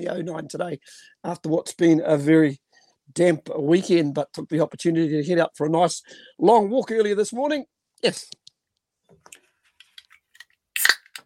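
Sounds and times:
speech: 0:00.0 - 0:08.4
beer being opened: 0:10.3 - 0:11.2.

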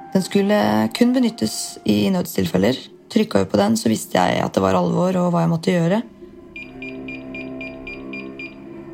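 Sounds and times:
speech: 0:00.2 - 0:06.2
emergency call sensor ringing: 0:06.6 - 0:08.6.

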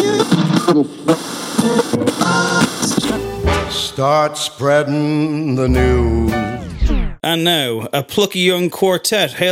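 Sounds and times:
speech: 0:00.1 - 0:01.8, 0:04.0 - 0:06.6, 0:07.2 - 0:09.5
podcast segment musical sting jingle: 0:03.2 - 0:04.1, 0:05.7 - 0:07.1.

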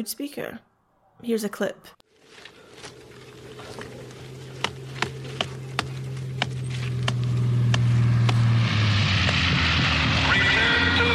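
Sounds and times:
speech: 0:00.0 - 0:02.6
airplane swooping low overhead: 0:02.3 - 0:11.1.

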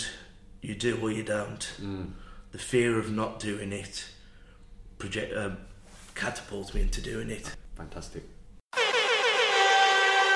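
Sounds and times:
speech: 0:00.6 - 0:04.2, 0:05.0 - 0:08.4
quiz show buzzer going off: 0:08.8 - 0:10.3.

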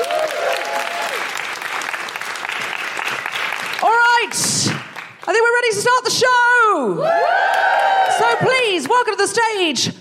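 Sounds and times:
audience applause: 0:00.0 - 0:05.3, 0:07.1 - 0:08.4
speech: 0:03.8 - 0:09.9.

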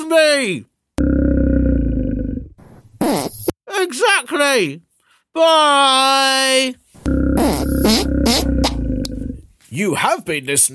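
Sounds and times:
speech: 0:00.1 - 0:00.7, 0:03.1 - 0:06.8, 0:07.4 - 0:08.5, 0:09.8 - 0:10.7
grizzly bear roaring and grunting: 0:01.0 - 0:02.6, 0:07.0 - 0:09.5.

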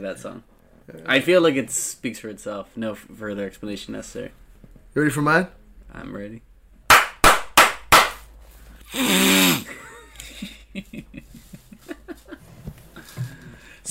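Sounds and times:
speech: 0:00.0 - 0:04.4, 0:05.0 - 0:06.5, 0:10.8 - 0:11.2
sharp slaps: 0:06.9 - 0:08.3.

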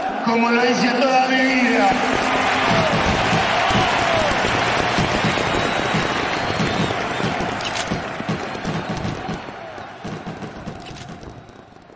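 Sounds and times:
stadium crowd applauding and cheering: 0:00.0 - 0:11.9
speech: 0:00.3 - 0:03.3.

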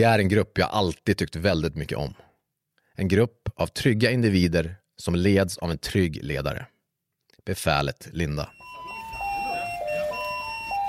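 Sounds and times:
speech: 0:00.0 - 0:02.3, 0:03.0 - 0:06.7, 0:07.4 - 0:08.6
fire station alarm signal: 0:08.5 - 0:10.8.

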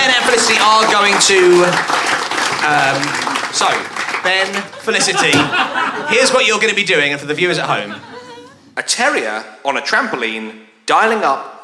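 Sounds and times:
audience applause: 0:00.0 - 0:06.6
speech: 0:00.4 - 0:08.1, 0:08.8 - 0:11.6
laughter: 0:02.6 - 0:08.8.

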